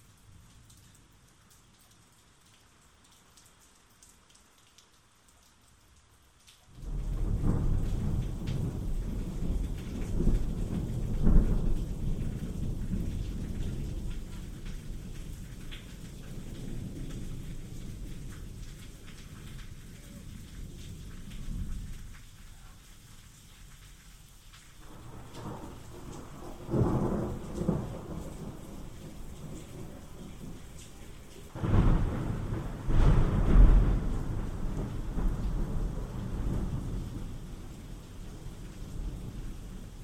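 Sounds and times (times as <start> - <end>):
rain: 0.0 - 40.0
thunderstorm: 6.8 - 22.1, 24.8 - 40.0.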